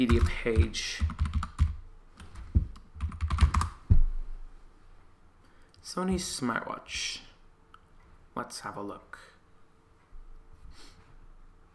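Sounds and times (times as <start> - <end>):
speech: 0.0 - 1.3, 5.9 - 7.3, 8.4 - 9.3
fingers typing on a computer keyboard: 0.0 - 3.8.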